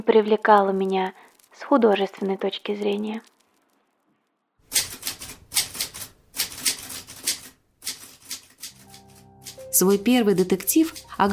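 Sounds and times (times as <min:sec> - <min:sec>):
speech: 0:00.0 - 0:03.3, 0:09.8 - 0:11.3
typewriter keys clattering: 0:04.7 - 0:11.3.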